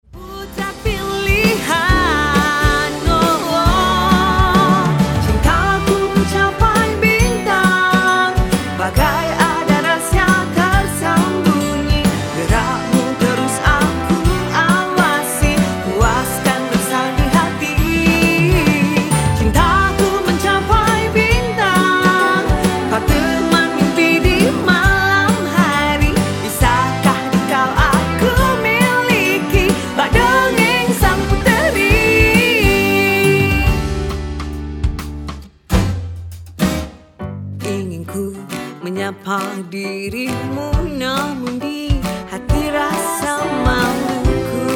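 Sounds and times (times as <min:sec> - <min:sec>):
Broadway pop music: 0:00.0 - 0:44.7.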